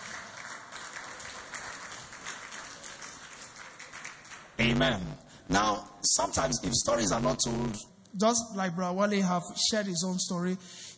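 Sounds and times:
audience clapping: 0.0 - 5.0
speech: 4.6 - 10.9.

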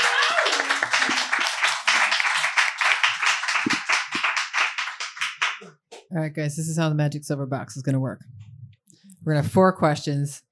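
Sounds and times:
audience applauding: 0.0 - 5.7
speech: 6.1 - 8.3, 9.2 - 10.4.

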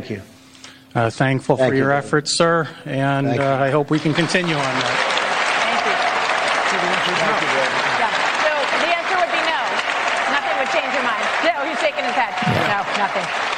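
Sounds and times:
speech: 0.0 - 0.3, 0.9 - 5.0
audience applause at town hall: 3.9 - 13.5.

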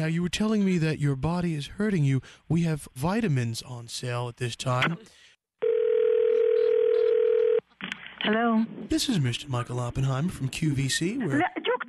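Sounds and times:
speech: 0.0 - 5.2, 8.2 - 11.6
telephone dial tone after hang-up: 5.6 - 7.6.

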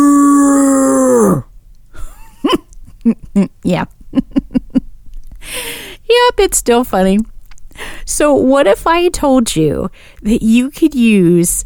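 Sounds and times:
person imitating a cow mooing: 0.0 - 1.5
speech: 3.4 - 4.0, 6.2 - 7.3, 8.1 - 11.6.

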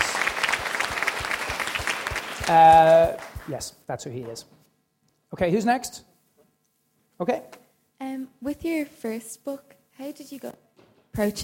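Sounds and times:
crowd clapping: 0.0 - 3.6
speech: 2.5 - 4.6, 5.3 - 6.1, 7.2 - 10.6, 11.2 - 11.4.

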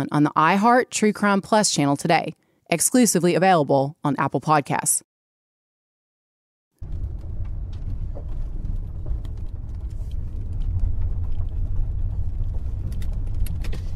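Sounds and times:
speech: 0.0 - 5.1
car engine drone on Highway 9: 6.8 - 13.9
road rumble on Highway 9: 6.8 - 13.9.

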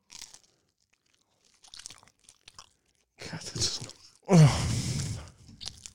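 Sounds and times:
someone chewing oven pizza topped with peanut butter and jelly: 0.0 - 5.9
murmured vocal hum: 3.2 - 5.6.

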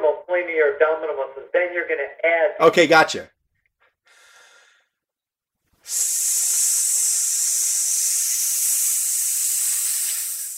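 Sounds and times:
speech: 0.4 - 3.4, 5.9 - 6.6
forceful hissing exhale through the teeth in a breathing exercise: 5.8 - 10.5.

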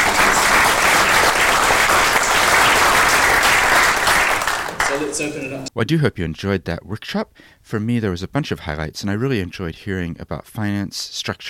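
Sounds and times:
audience applause: 0.0 - 5.7
speech: 5.2 - 11.4.

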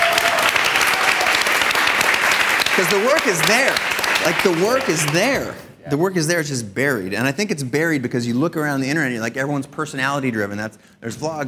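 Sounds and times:
audience applause: 0.0 - 5.6
speech: 2.8 - 11.4.

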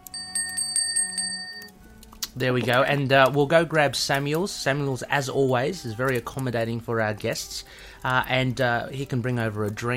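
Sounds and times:
bell ringing: 0.0 - 1.8
speech: 2.4 - 9.9.

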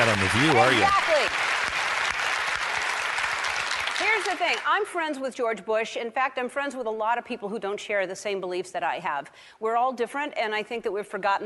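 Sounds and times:
speech: 0.0 - 1.4, 4.2 - 11.4
audience applause: 0.0 - 4.7.

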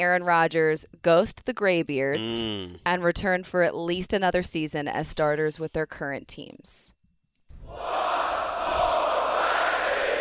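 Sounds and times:
speech: 0.0 - 7.0
live show audience cheering: 7.6 - 10.2.

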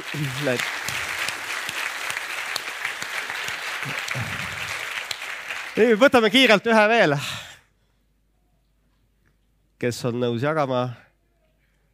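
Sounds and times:
audience applauding: 0.0 - 6.6
speech: 0.1 - 1.1, 3.8 - 4.6, 5.8 - 7.4, 9.8 - 11.0.

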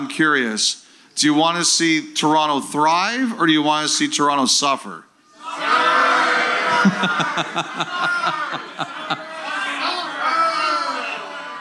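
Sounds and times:
speech: 0.0 - 5.1, 6.8 - 9.2
live audience shouting in response: 5.3 - 11.5
rhythmic choppy bursts of laughter or jeers: 6.4 - 9.8.

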